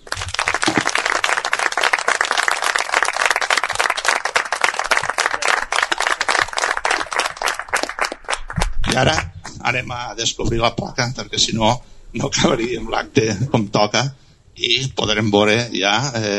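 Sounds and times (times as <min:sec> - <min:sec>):
audience applause: 0:00.0 - 0:09.4
speech: 0:09.0 - 0:16.3.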